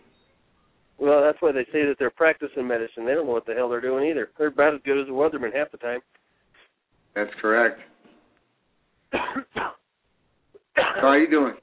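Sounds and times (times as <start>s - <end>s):
speech: 1.0s - 6.2s, 7.2s - 7.9s, 9.1s - 9.8s, 10.8s - 11.6s
cough: 9.1s - 9.9s, 10.6s - 11.2s.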